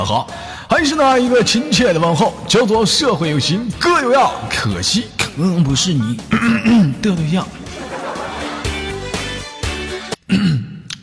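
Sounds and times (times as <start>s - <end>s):
speech: 0.0s - 7.8s, 10.3s - 10.7s
music: 0.0s - 10.7s
person clearing throat after eating instant noodles: 6.3s - 7.0s, 10.3s - 10.9s
laughter: 7.4s - 9.4s.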